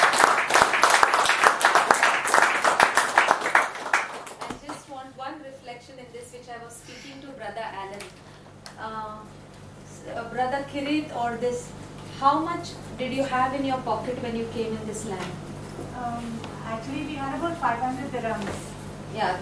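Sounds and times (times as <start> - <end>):
audience clapping: 0.0 - 4.9
speech: 10.4 - 19.4.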